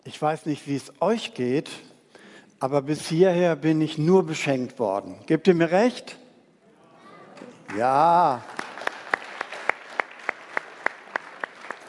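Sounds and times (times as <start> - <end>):
speech: 0.1 - 1.9, 2.6 - 6.2, 7.7 - 8.5
audience clapping in rhythm in church: 7.6 - 11.8
scattered applause: 7.7 - 11.8.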